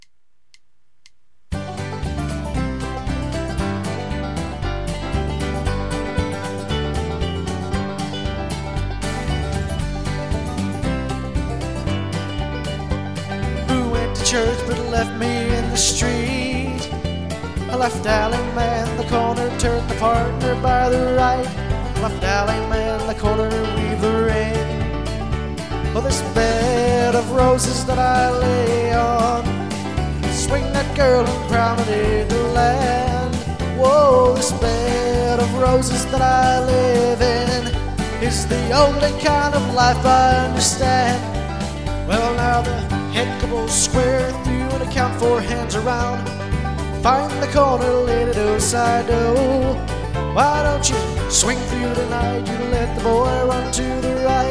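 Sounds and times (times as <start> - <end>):
instrumental music: 0.0 - 54.4.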